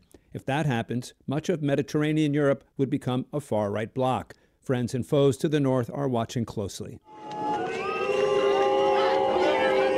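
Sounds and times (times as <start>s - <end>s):
speech: 0.4s - 7.4s
crowd booing and jeering at political rally: 7.1s - 9.9s.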